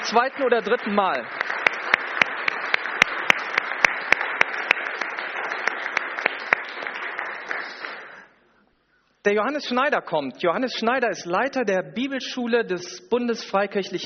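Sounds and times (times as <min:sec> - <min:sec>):
audience applause: 0:00.0 - 0:08.3
speech: 0:00.1 - 0:01.4, 0:09.2 - 0:14.0.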